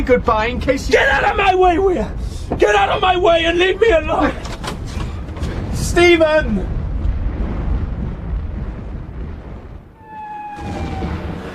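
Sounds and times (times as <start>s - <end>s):
speech: 0.0s - 4.5s, 6.0s - 6.8s
artillery bombardment explosions in a war drama: 0.0s - 11.5s
thin high whistling tone: 10.0s - 11.3s.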